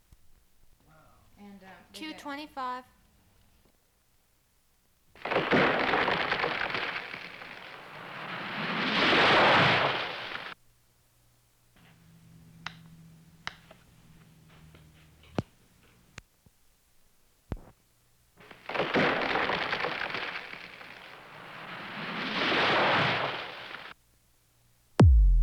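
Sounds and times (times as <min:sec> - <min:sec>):
tree falling and hitting ground: 0:05.2 - 0:10.6, 0:18.4 - 0:23.9.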